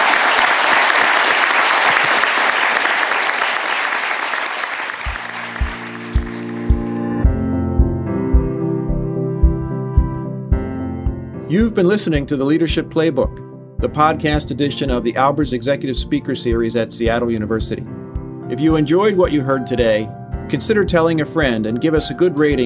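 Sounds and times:
audience applause: 0:00.0 - 0:07.2
music with thumping bass beat: 0:05.6 - 0:11.2, 0:16.0 - 0:18.8
speech: 0:11.5 - 0:22.6.

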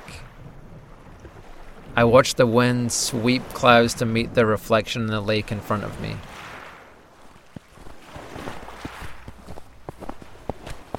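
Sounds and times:
speech: 0:02.0 - 0:06.3
footsteps crunching on snow: 0:07.2 - 0:10.9.

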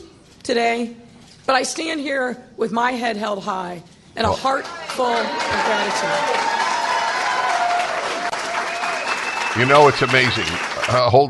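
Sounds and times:
speech: 0:00.5 - 0:06.6, 0:09.6 - 0:11.2
crowd clapping: 0:04.4 - 0:11.2
faint whistle or cheer: 0:07.0 - 0:10.0.

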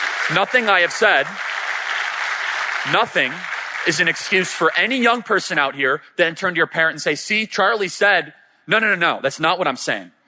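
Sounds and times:
audience applause at a speaking event: 0:00.0 - 0:05.4
speech: 0:00.3 - 0:01.5, 0:02.8 - 0:10.2.

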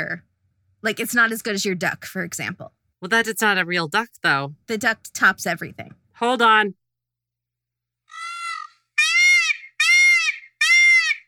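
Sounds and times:
speech: 0:00.0 - 0:06.8
person imitating a peacock call: 0:08.1 - 0:11.2.

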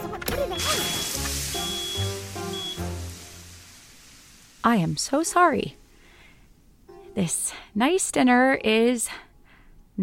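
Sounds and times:
water thrown onto a burning tablecloth: 0:00.3 - 0:06.5
speech: 0:04.6 - 0:05.8, 0:07.2 - 0:09.2.

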